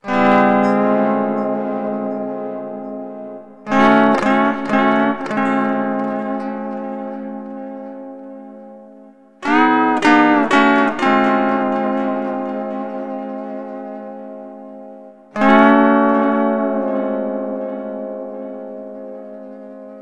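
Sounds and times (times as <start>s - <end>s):
lounge guitar chord C: 0.0s - 20.0s.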